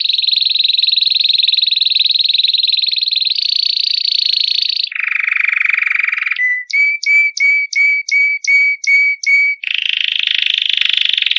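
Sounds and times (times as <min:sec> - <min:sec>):
canary buzzy trill of fast repeated notes: 0:00.0 - 0:11.3.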